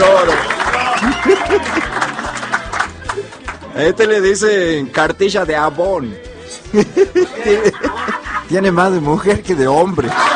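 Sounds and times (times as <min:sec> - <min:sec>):
laughter: 0:00.0 - 0:03.4, 0:06.6 - 0:08.8, 0:09.8 - 0:10.3
crowd applause for a presenter: 0:00.0 - 0:04.1
speech: 0:03.8 - 0:10.3.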